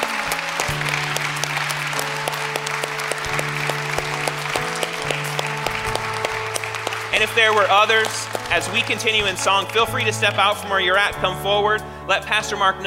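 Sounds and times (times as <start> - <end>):
audience applause: 0.0 - 10.0
speech: 7.2 - 12.8.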